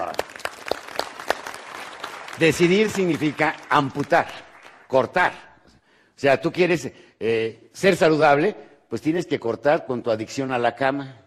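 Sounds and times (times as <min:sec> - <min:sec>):
small group clapping: 0:00.0 - 0:05.2
speech: 0:02.4 - 0:05.5, 0:06.2 - 0:11.2.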